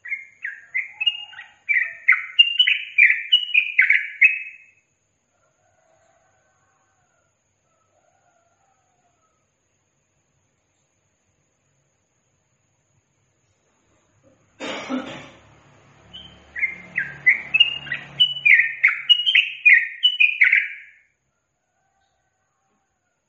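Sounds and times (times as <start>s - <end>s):
yellow-vented bulbul singing chattering slurred phrases: 0.0s - 4.8s, 16.1s - 21.0s.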